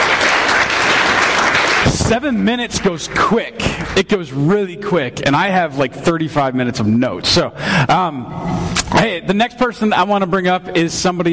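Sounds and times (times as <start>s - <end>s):
audience applause: 0.0s - 4.1s
speech: 1.8s - 11.3s.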